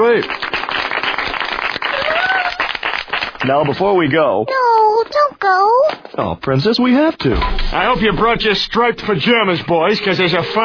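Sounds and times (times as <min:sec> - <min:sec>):
speech: 0:00.0 - 0:00.5, 0:03.4 - 0:10.6
round of applause from a small group: 0:00.0 - 0:04.1.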